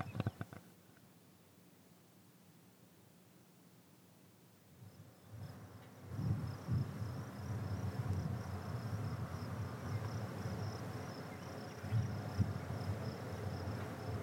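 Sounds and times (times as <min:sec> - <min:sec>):
birds in Montana: 0:00.0 - 0:00.7, 0:09.7 - 0:14.2
rumble: 0:04.8 - 0:14.2.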